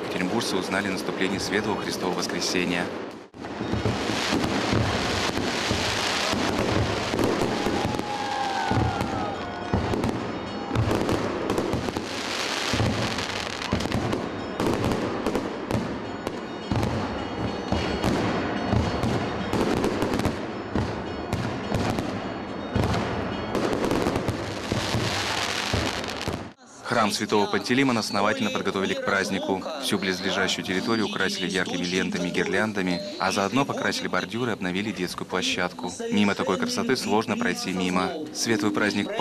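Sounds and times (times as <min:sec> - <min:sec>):
Easter fireworks booms and crackles: 0:00.0 - 0:26.6
speech: 0:00.4 - 0:03.2, 0:27.2 - 0:39.1
firework whistling streak: 0:03.5 - 0:15.3.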